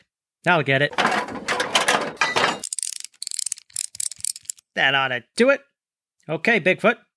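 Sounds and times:
speech: 0.4 - 1.4, 4.8 - 5.7, 6.3 - 7.1
ratchet wrench clicking on a car part: 2.6 - 4.6.

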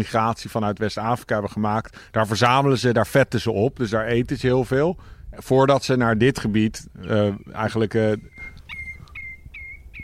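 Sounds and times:
speech: 0.0 - 8.3
Common Redshank calling: 7.0 - 10.0.

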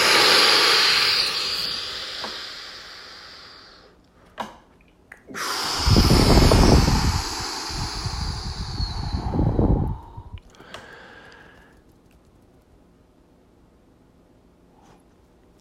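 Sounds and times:
deep breath in: 0.0 - 3.9, 5.4 - 11.8.

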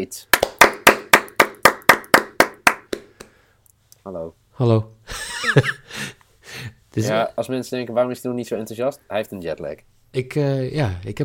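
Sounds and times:
speech: 0.0 - 0.3, 4.0 - 11.2
hand clapping: 0.3 - 3.4
laughter: 5.1 - 5.9.

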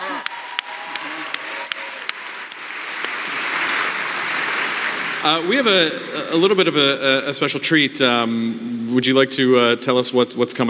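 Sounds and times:
audience applause for the producers: 0.0 - 7.0
speech: 5.2 - 10.6.

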